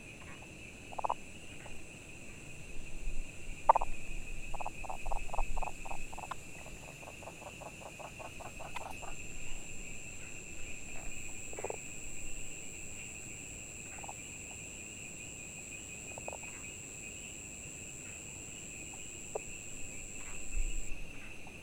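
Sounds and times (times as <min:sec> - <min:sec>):
frogs croaking: 0:00.0 - 0:21.6.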